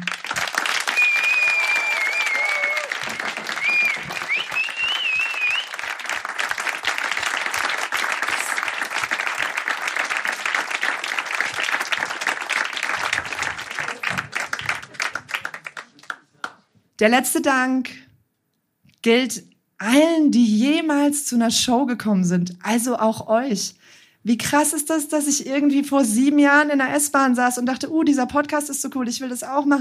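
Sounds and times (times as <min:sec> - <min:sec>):
crowd applauding: 0:00.0 - 0:16.6
whistles and cheers: 0:00.7 - 0:05.8
speech: 0:17.0 - 0:18.0, 0:19.0 - 0:29.7.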